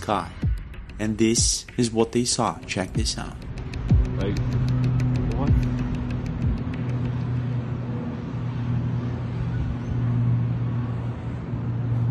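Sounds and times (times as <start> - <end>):
speech: 0.0 - 0.4, 1.0 - 3.4, 4.2 - 4.6
airplane engine noise: 3.5 - 12.0.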